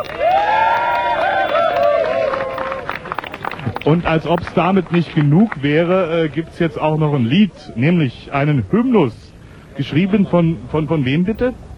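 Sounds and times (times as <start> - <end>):
audience applause and cheering: 0.0 - 5.7
speech: 3.8 - 9.2, 9.8 - 11.7.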